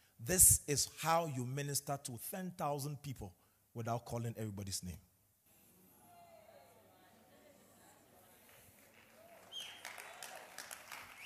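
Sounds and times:
speech: 0.2 - 5.1
audience clapping: 8.2 - 11.2.

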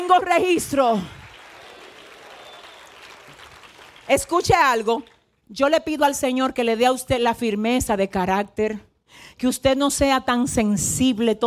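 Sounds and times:
speech: 0.1 - 1.2, 4.1 - 11.4
audience applause: 1.2 - 5.2.

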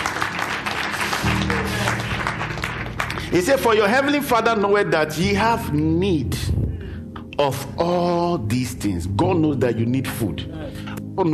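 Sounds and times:
audience clapping hands: 0.0 - 4.2
speech: 3.3 - 6.6, 7.4 - 10.5, 11.2 - 11.3.

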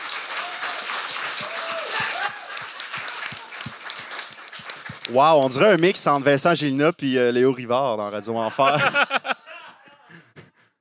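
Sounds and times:
audience applause: 0.0 - 6.7
laughter: 1.7 - 3.7, 8.1 - 10.6
speech: 5.1 - 9.2.

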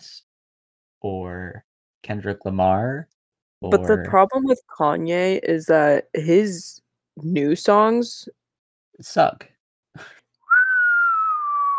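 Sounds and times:
speech: 1.0 - 8.4, 9.0 - 10.2
person whistling loudly for a deaf dog: 10.5 - 11.7.

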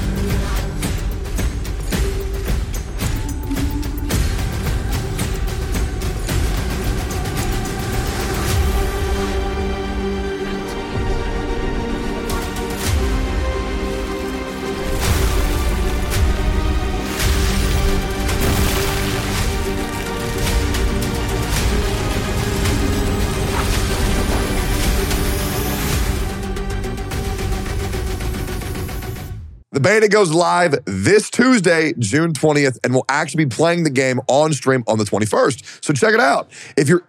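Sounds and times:
MOBA gameplay trailer soundtrack music: 0.0 - 29.6
speech: 29.8 - 37.0.

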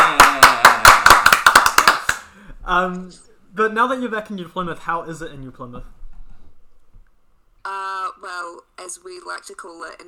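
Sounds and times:
round of sharp evenly spaced claps: 0.0 - 2.3
speech: 2.7 - 6.0, 7.6 - 10.0.

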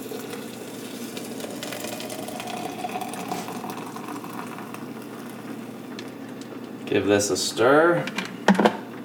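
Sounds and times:
hot water poured into French press: 0.0 - 6.2
speech: 6.9 - 8.7.

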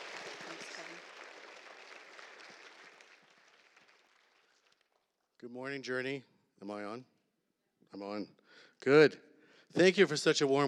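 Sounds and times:
audience applause: 0.0 - 5.1
speech: 5.4 - 7.1, 7.9 - 10.6.

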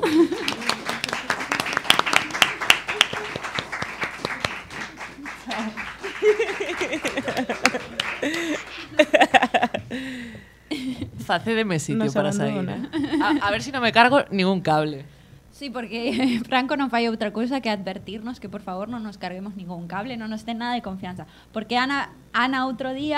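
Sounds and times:
audience applause: 0.0 - 9.5
laughter: 0.0 - 11.1, 12.5 - 13.6
speech: 11.3 - 23.1.

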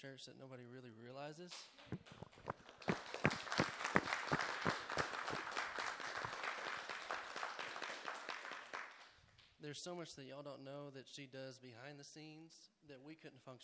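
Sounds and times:
speech: 0.0 - 3.0, 9.7 - 13.6
audience clapping: 1.9 - 9.5.

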